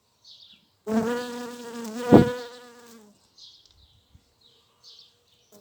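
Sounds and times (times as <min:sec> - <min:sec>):
bees and mason bee buzzing: 0:00.9 - 0:03.0.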